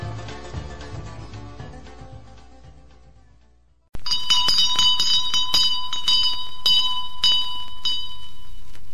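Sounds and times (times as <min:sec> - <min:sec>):
bell rung to summon a servant: 0:04.0 - 0:08.8.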